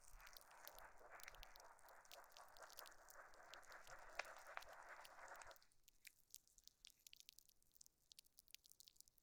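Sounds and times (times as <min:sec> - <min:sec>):
foam washing: 0:00.0 - 0:05.6.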